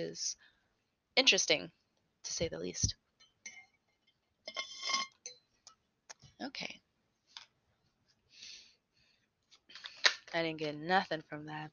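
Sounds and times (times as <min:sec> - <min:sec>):
speech: 0:00.0 - 0:00.5, 0:01.2 - 0:03.0, 0:06.4 - 0:06.8, 0:10.3 - 0:11.7
glass clinking during a drink of water: 0:03.2 - 0:03.8, 0:04.5 - 0:05.5
glass clattering: 0:04.5 - 0:05.4.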